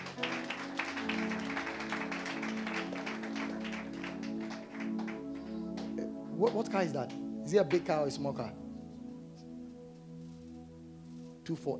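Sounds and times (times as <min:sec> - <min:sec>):
crowd clapping: 0:00.0 - 0:07.8
low sustained musical tone: 0:00.0 - 0:11.7
speech: 0:06.4 - 0:08.6, 0:11.5 - 0:11.7.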